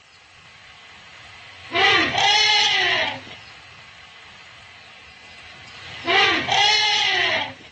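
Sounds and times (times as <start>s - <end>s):
elephants greeting a newborn calf: 1.7s - 3.4s, 5.9s - 7.6s.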